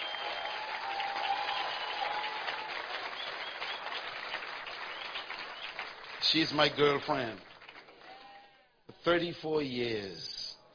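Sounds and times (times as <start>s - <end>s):
audience applause at a morning event: 0.0s - 8.2s
speech: 6.3s - 7.5s, 9.0s - 10.4s.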